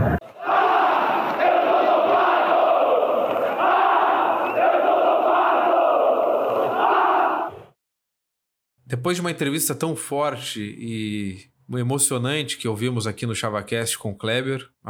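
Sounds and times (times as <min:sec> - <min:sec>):
stadium crowd cheering after a goal: 0:00.0 - 0:07.8
speech: 0:09.0 - 0:14.8.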